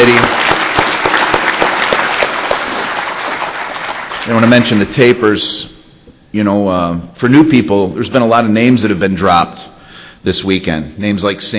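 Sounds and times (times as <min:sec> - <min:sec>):
audience applause: 0:00.0 - 0:05.2
speech: 0:04.3 - 0:05.7, 0:06.3 - 0:11.5.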